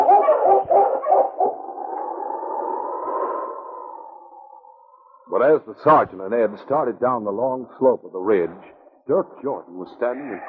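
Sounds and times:
husky sled dog barking: 0.0s - 1.7s
husky sled dog howling: 0.0s - 4.9s
speech: 5.5s - 10.4s.

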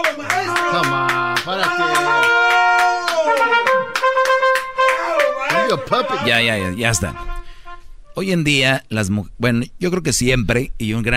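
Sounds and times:
person clapping: 0.0s - 6.2s
speech: 5.8s - 7.3s, 8.2s - 11.1s.

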